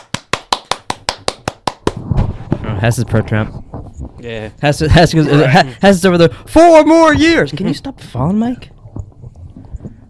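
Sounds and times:
applause, people clapping hands: 0.0s - 2.0s
speech: 2.8s - 3.6s, 4.2s - 8.7s.

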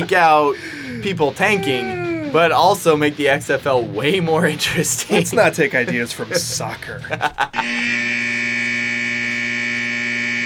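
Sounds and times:
laughter: 0.0s - 2.4s, 4.5s - 7.9s
speech: 0.0s - 8.3s
long electronic buzzer: 7.6s - 10.4s.

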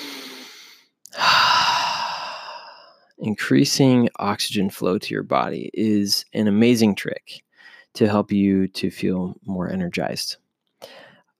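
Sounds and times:
deep breathing: 0.0s - 3.2s, 7.5s - 7.9s, 10.8s - 11.3s
speech: 3.2s - 11.0s.

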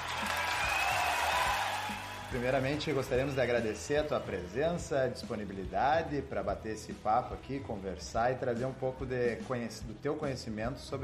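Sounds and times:
applause: 0.0s - 5.6s
speech: 2.3s - 11.0s.

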